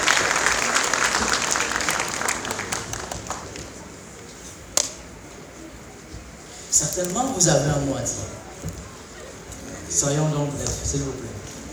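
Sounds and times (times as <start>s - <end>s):
audience applause: 0.0s - 4.1s
speech: 6.9s - 8.8s, 10.0s - 11.3s.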